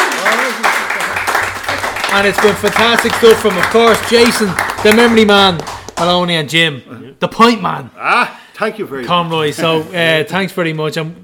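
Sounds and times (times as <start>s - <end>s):
round of applause: 0.0s - 6.3s
speech: 2.1s - 11.2s.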